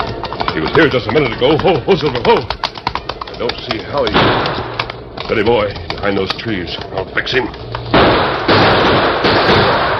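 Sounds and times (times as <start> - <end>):
speech: 0.6 - 2.6, 3.4 - 4.7, 5.3 - 7.7
gunshots in a radio drama chase on horseback: 4.1 - 4.8, 7.9 - 9.9.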